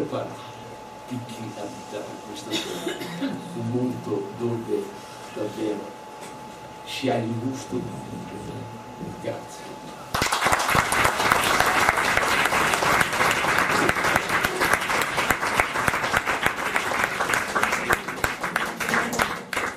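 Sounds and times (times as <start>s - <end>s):
speech: 0.1s - 0.5s, 1.1s - 6.0s, 6.9s - 9.8s
audience applause: 10.1s - 19.7s.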